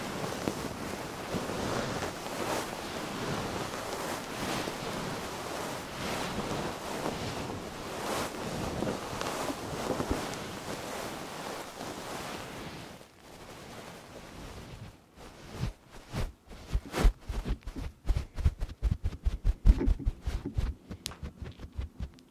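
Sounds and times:
fluffy microphone being rubbed and brushed: 0.0 - 22.2
sharp taps and thumps: 16.6 - 22.2.

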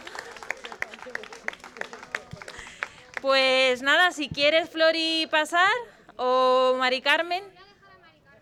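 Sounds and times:
audience applause: 0.0 - 3.3
speech: 3.2 - 7.5.

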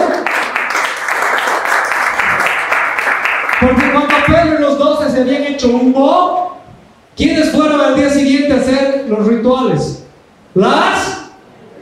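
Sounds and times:
audience applause: 0.0 - 4.3
speech: 3.6 - 4.6, 5.2 - 6.5, 7.2 - 10.0, 10.6 - 11.1.

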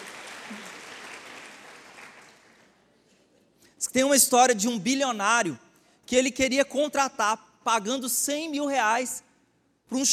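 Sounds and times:
audience applause: 0.0 - 2.7
speech: 3.9 - 9.3, 9.9 - 10.1.

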